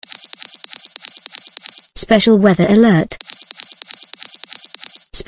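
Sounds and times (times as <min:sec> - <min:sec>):
weather alert tone: 0:00.0 - 0:01.9, 0:03.2 - 0:05.1.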